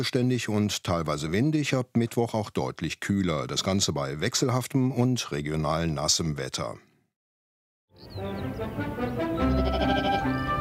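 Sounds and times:
speech: 0.0 - 6.9, 8.0 - 9.0
flock of sheep bleating: 9.4 - 10.5.

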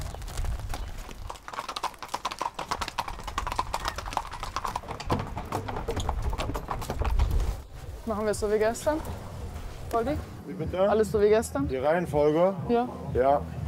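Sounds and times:
four horses' hooves clip-clopping on a promenade: 0.0 - 10.9
speech: 8.1 - 9.3, 9.9 - 13.6.

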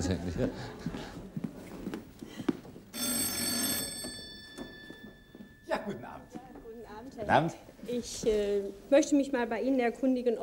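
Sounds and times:
laughter: 0.0 - 1.0
speech: 0.0 - 1.4, 7.2 - 10.4
doorbell ringing: 2.9 - 7.2.

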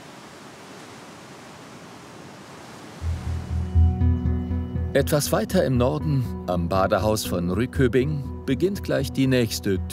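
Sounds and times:
ocean waves: 0.0 - 3.8
speech: 5.0 - 9.9.

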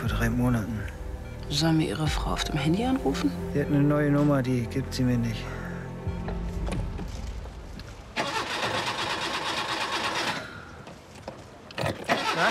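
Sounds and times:
low rumble: 0.0 - 8.2
speech: 0.2 - 5.6
car engine cranking and failing to start: 8.2 - 10.8, 11.7 - 12.4.

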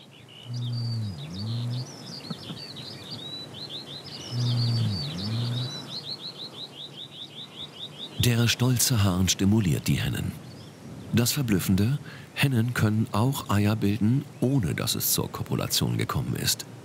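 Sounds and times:
greater rhea call: 0.5 - 2.6, 4.2 - 6.0
speech: 8.3 - 10.5, 11.1 - 16.8.

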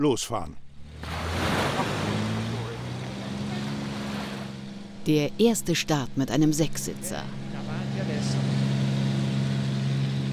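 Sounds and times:
speech: 0.0 - 0.6, 5.0 - 7.4
low engine drone from a passing ferry: 0.6 - 10.3
constant rush of water and wind: 0.9 - 4.6
wash of the passing ferry's waves surging: 1.0 - 4.8.

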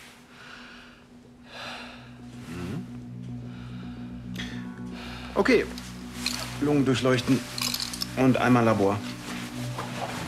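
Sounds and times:
patient breathing deeply in and out during a medical examination: 0.0 - 6.6
speech: 5.4 - 5.8, 6.6 - 7.6, 8.2 - 9.1.

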